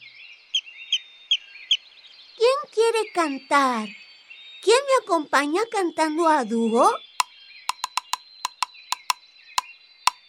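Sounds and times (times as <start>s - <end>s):
speech: 2.8s - 4.0s, 4.6s - 7.1s
woodpecker pecking on a tree trunk: 7.7s - 9.2s.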